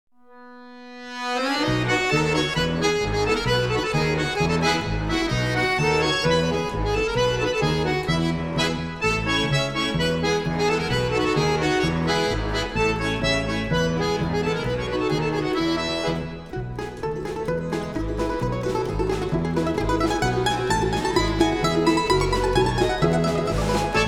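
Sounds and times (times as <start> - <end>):
national ensemble playing a Polish folk dance: 0.6 - 24.0.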